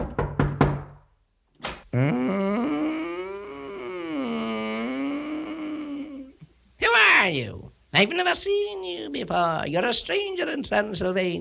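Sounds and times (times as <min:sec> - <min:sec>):
knocking on a door: 0:00.0 - 0:01.0
sung-like voice: 0:01.9 - 0:06.4
speech: 0:02.0 - 0:02.2, 0:07.3 - 0:11.3.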